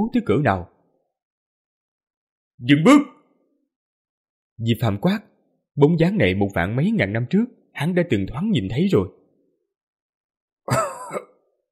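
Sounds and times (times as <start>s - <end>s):
speech: 0.0s - 0.7s, 2.6s - 3.2s, 4.6s - 9.2s, 10.7s - 11.3s
old man's violent hacking cough: 10.7s - 11.5s.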